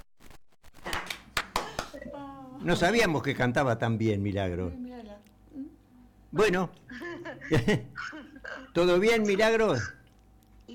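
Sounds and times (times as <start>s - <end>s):
hand claps: 0.8s - 2.0s
speech: 2.2s - 5.3s, 6.3s - 10.0s
laughter: 6.9s - 10.0s.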